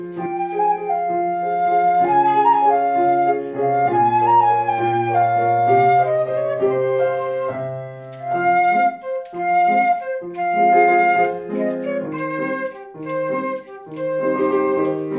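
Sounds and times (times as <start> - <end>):
caxixi shaker: 0.0 - 1.9, 6.1 - 15.1
flute: 0.0 - 15.1
piano: 0.0 - 15.1.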